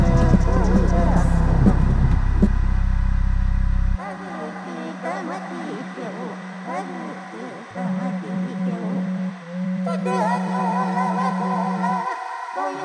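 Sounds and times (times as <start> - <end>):
drums: 0.0 - 2.6
mixed vocals: 0.0 - 12.8.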